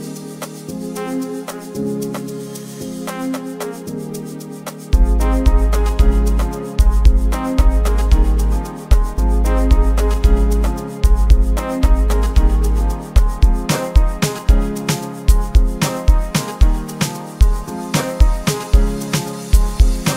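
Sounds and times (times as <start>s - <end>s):
808 bass hard kick drum: 5.0s - 20.1s.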